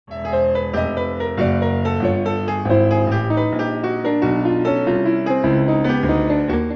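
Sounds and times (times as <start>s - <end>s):
piano: 0.0s - 6.7s.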